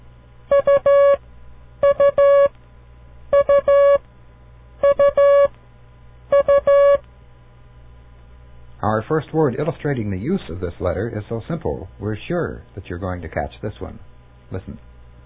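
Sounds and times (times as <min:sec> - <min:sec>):
Morse code beeps for the letter U: 0:00.5 - 0:01.2, 0:01.8 - 0:02.5, 0:03.3 - 0:04.0, 0:04.8 - 0:05.5, 0:06.3 - 0:07.0
speech: 0:08.8 - 0:14.9.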